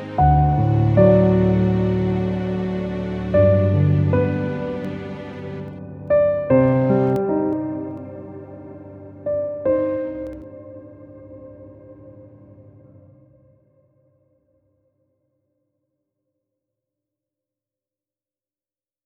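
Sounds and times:
dramatic strings: 0.0 - 10.3.

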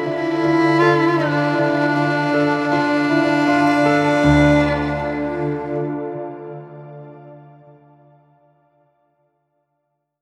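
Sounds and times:
dramatic violin solo: 0.0 - 7.8.

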